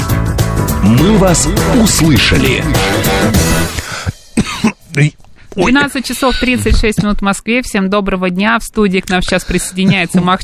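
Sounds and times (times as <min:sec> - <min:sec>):
speech: 0:00.9 - 0:03.5, 0:04.6 - 0:10.4
person coughing after choking on an inhaled breath: 0:03.9 - 0:05.1.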